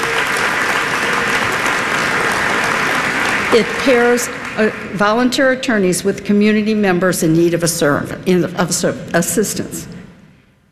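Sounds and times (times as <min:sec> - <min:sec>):
audience applause at a county court pro bono event: 0:00.0 - 0:05.3
speech: 0:03.5 - 0:10.0.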